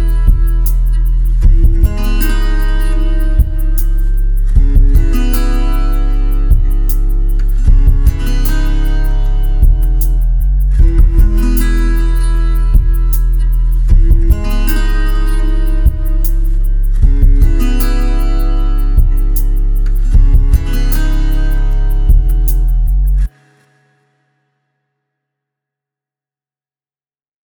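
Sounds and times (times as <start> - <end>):
guitar playing: 0.0 - 23.9.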